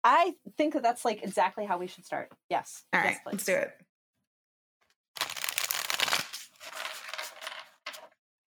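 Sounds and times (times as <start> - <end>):
speech: 0.1 - 3.9
Jungian tarot cards rustling and sliding: 5.2 - 8.1.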